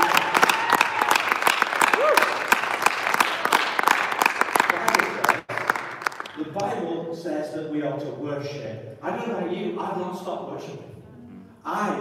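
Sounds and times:
audience clapping: 0:00.0 - 0:06.8
speech: 0:07.2 - 0:10.9, 0:11.6 - 0:11.9.

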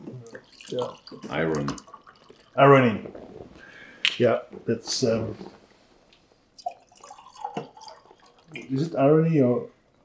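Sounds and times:
red wine being poured into a glass: 0:00.2 - 0:03.4, 0:06.6 - 0:08.9
speech: 0:00.5 - 0:01.9, 0:02.6 - 0:03.2, 0:04.2 - 0:05.6, 0:08.6 - 0:09.8.

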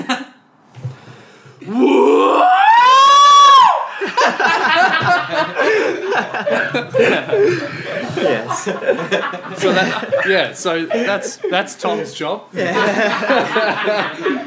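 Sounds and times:
laughter: 0:00.0 - 0:00.3, 0:03.9 - 0:14.4
guttural performed scream: 0:01.6 - 0:03.9
speech: 0:01.7 - 0:01.9, 0:08.7 - 0:14.4
overlapping voices: 0:03.9 - 0:14.4.

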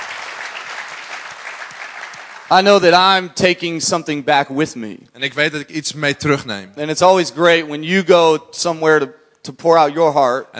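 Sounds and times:
audience applause for pastors: 0:00.0 - 0:02.8
speech: 0:02.5 - 0:10.5.

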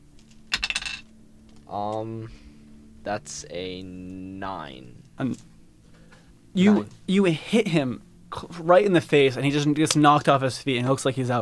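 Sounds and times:
dice clattering onto a hard surface: 0:00.3 - 0:01.0
speech: 0:01.7 - 0:05.5, 0:06.6 - 0:11.4.

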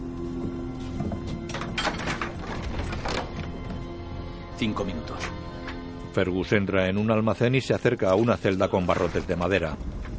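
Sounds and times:
door being opened: 0:01.0 - 0:03.9
speech: 0:04.6 - 0:05.4, 0:06.1 - 0:10.0.

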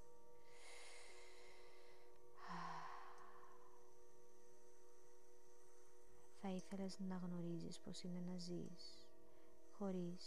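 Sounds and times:
deep inhalation: 0:00.6 - 0:03.8
speech: 0:06.4 - 0:09.1, 0:09.8 - 0:10.2.

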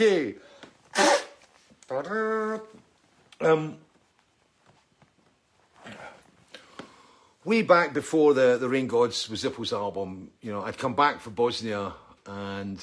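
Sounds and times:
speech: 0:00.0 - 0:01.2, 0:01.9 - 0:02.8, 0:03.4 - 0:03.8, 0:07.4 - 0:12.8
nose blowing: 0:00.9 - 0:01.5.

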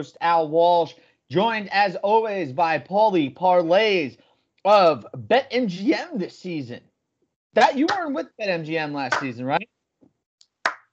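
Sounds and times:
speech: 0:00.0 - 0:06.9, 0:07.6 - 0:09.7
hand clapping: 0:07.6 - 0:08.2, 0:09.1 - 0:09.4.

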